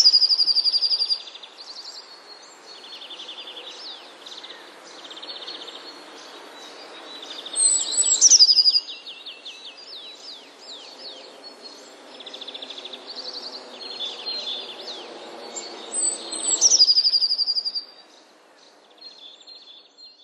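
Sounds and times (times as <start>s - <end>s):
Eurasian blue tit calling: 0.0s - 1.4s, 7.2s - 9.1s, 15.5s - 17.9s
soft hiss: 0.0s - 20.0s.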